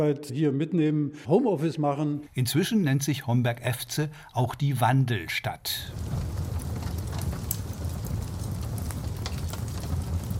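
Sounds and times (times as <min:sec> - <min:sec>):
speech: 0:00.0 - 0:06.3
fireplace fire crackling in a farmhouse in Niederurf: 0:05.8 - 0:10.3.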